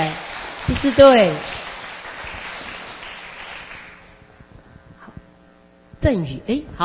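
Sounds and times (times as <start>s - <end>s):
audience applause: 0.0s - 4.2s
speech: 0.7s - 1.6s, 6.1s - 6.8s.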